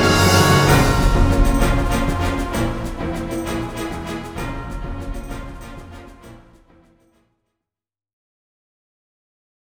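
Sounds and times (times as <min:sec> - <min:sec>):
game theme music: 0:00.0 - 0:06.9.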